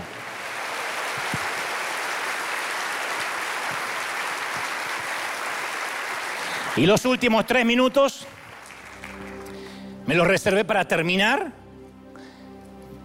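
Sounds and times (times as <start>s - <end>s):
crowd applauding: 0.0s - 10.2s
speech: 6.8s - 8.4s, 10.1s - 11.6s.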